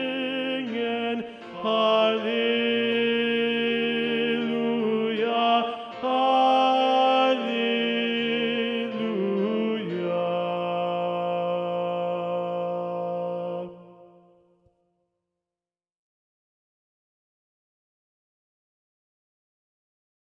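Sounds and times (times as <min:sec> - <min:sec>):
tenor singing a motet: 0:00.0 - 0:14.4.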